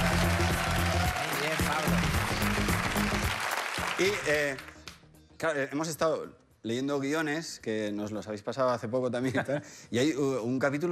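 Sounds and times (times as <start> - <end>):
applause: 0.0 - 5.0
speech: 4.0 - 4.7, 5.4 - 10.9.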